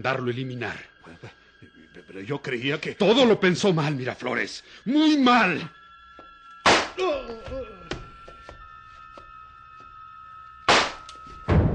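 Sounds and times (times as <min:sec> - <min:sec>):
speech: 0:00.0 - 0:01.3, 0:02.1 - 0:05.8, 0:07.0 - 0:07.8
pistol gunshots: 0:10.7 - 0:11.1.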